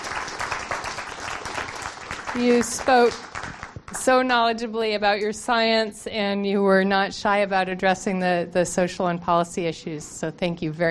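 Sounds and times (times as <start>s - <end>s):
audience applause: 0.0s - 3.8s
speech: 2.3s - 3.3s, 4.0s - 10.8s.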